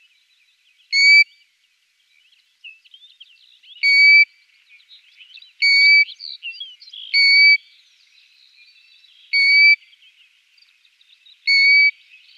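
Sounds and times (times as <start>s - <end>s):
European golden plover calling plaintive level whistles: 0.9s - 1.3s, 3.8s - 4.3s, 5.6s - 6.1s, 7.1s - 7.6s, 9.4s - 9.8s, 11.5s - 12.0s.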